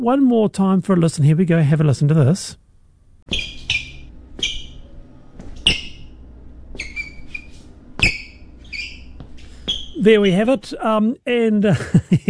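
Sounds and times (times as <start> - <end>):
speech: 0.0 - 2.6, 3.3 - 3.6, 10.0 - 12.2
shoes squeaking on office hall floor: 3.3 - 10.6.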